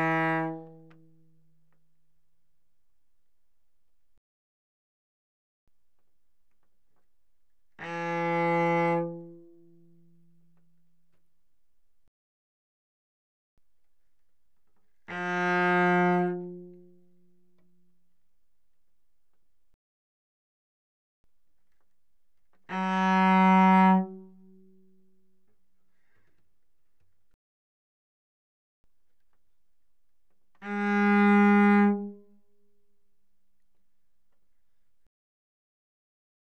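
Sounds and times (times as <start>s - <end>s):
cello arco notes on the D string: 0.0s - 1.6s, 7.8s - 10.8s, 15.1s - 17.8s, 22.5s - 24.8s, 30.5s - 32.2s.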